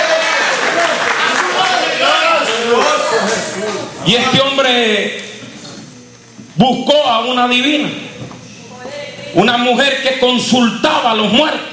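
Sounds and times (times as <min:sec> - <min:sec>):
audience applause: 0:00.0 - 0:03.9
speech: 0:04.0 - 0:05.2, 0:06.6 - 0:08.0, 0:09.3 - 0:11.7.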